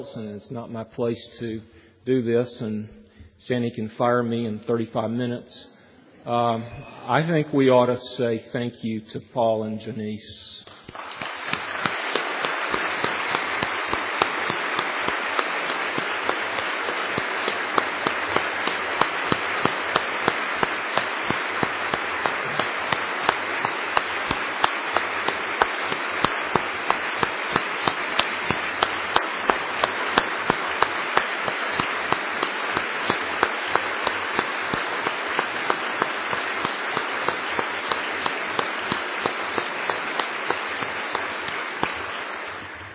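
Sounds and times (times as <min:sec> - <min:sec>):
speech: 0:00.0 - 0:10.8
audience clapping: 0:10.7 - 0:42.9.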